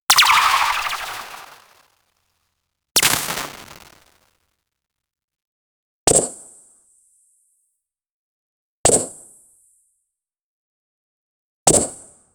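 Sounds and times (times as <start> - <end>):
insect unit attack sound effect: 0.1 - 1.8, 3.0 - 4.1.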